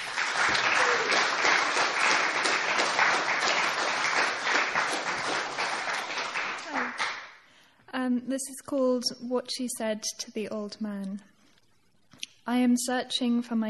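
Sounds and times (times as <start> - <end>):
audience applause at a poetry reading welcoming a poet: 0.0 - 7.3
speech: 8.2 - 11.3, 12.5 - 13.6.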